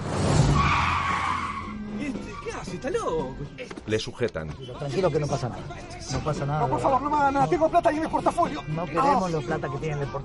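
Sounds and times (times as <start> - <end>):
car tires skidding under hard braking: 0.0 - 2.7
speech: 2.8 - 10.2.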